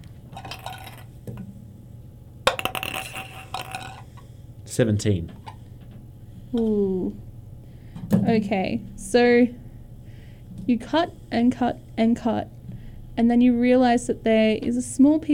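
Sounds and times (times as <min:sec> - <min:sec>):
d20 die rolled for a tabletop roleplaying game: 0:00.0 - 0:01.1, 0:02.5 - 0:04.1
speech: 0:04.8 - 0:05.4, 0:06.5 - 0:07.3, 0:08.2 - 0:09.6, 0:10.7 - 0:12.6, 0:13.2 - 0:15.3.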